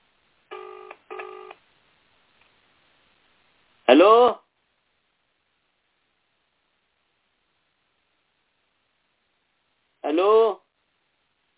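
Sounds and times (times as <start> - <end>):
electronic ringback tone on an outgoing phone call: 0.5 - 1.6
speech: 3.9 - 4.4.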